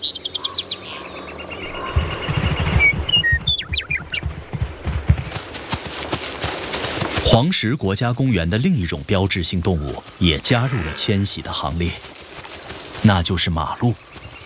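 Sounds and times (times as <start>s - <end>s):
birds singing in spring meadow: 0.0s - 5.2s, 8.1s - 14.4s
speech: 7.3s - 12.2s, 13.0s - 14.1s.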